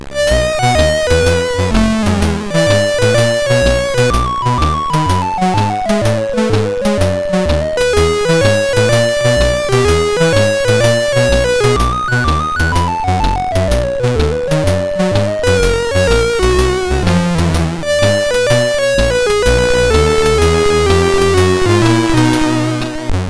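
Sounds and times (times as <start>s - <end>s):
MOS6581R4 SID chip music: 0.1s - 23.2s.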